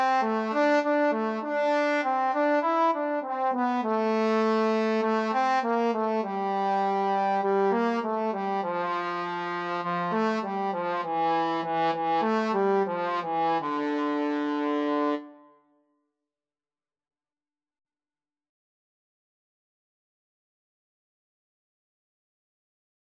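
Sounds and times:
trombone duet: 0:00.0 - 0:15.3.

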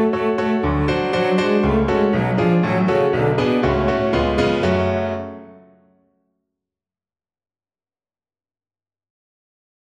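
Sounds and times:
piano trio: 0:00.0 - 0:05.9.

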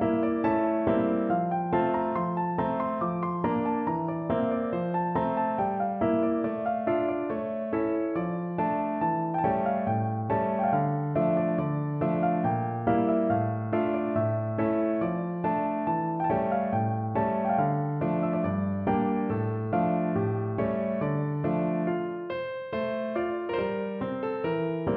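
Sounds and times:
gavotte played on piano: 0:00.0 - 0:24.9.

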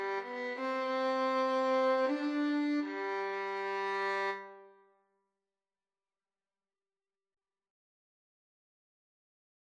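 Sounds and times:
oboe: 0:00.0 - 0:04.6
violin: 0:00.0 - 0:04.8.

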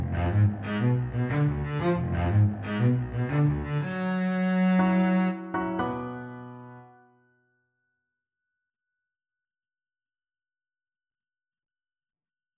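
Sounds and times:
double bass: 0:00.0 - 0:05.7
violin: 0:00.0 - 0:06.7.

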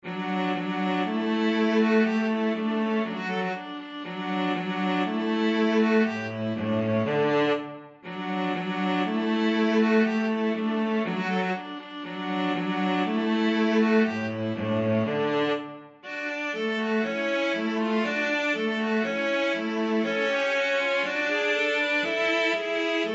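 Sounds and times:
cello: 0:00.0 - 0:23.1
viola: 0:00.0 - 0:23.1.

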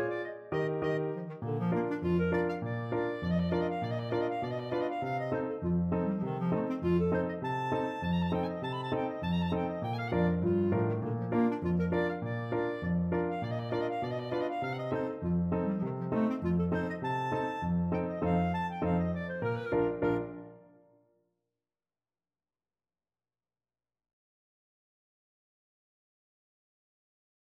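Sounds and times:
clarinet playing a polka: 0:00.0 - 0:20.8.

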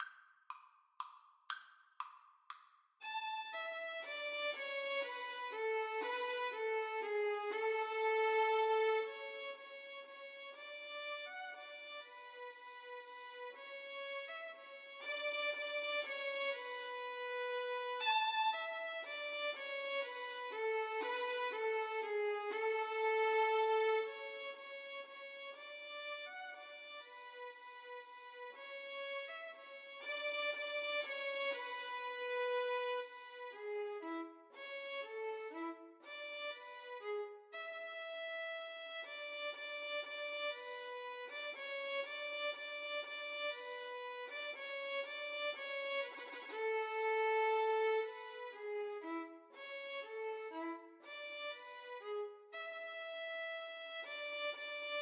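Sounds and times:
minuet violin duet: 0:03.0 - 0:55.0.

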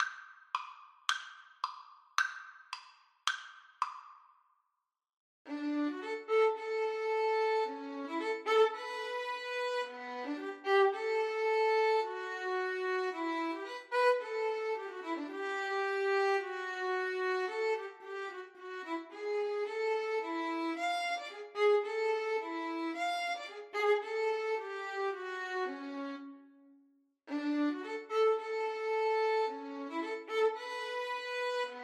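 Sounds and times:
violin duet: 0:05.5 - 0:26.3, 0:27.3 - 0:31.8.

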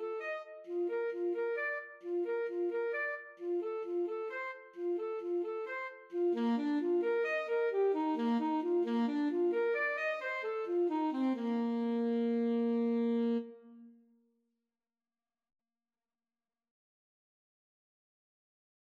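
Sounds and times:
alto saxophone playing in a trumpet and saxophone duet: 0:00.0 - 0:14.0.

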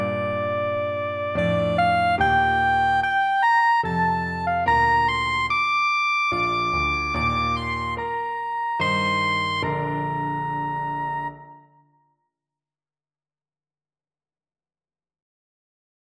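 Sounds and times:
Jupiter soprano saxophone: 0:00.0 - 0:11.6.

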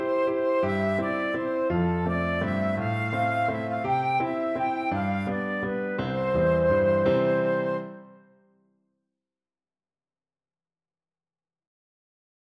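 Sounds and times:
flute melody: 0:00.0 - 0:08.4.

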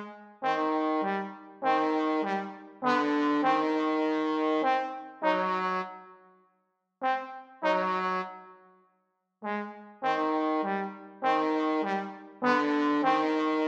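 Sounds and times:
trombone trio playing: 0:00.5 - 0:05.8, 0:09.5 - 0:13.6.

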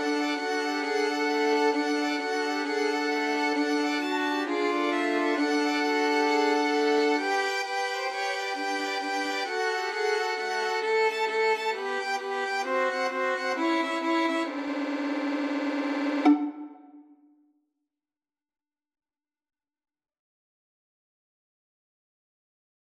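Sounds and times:
strings playing a Christmas boogie: 0:00.0 - 0:17.0.

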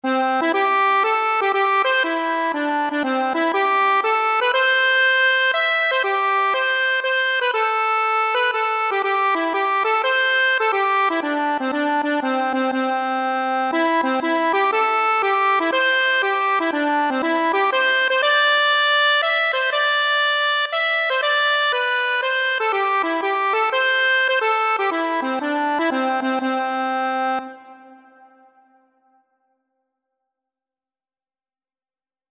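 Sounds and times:
accordion: 0:00.0 - 0:28.7.

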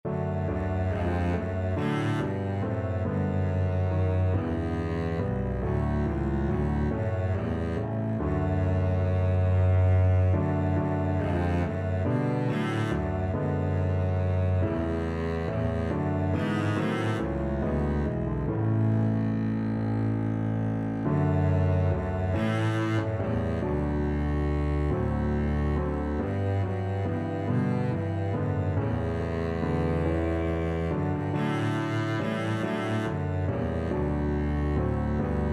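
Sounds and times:
double bass: 0:00.0 - 0:35.5.

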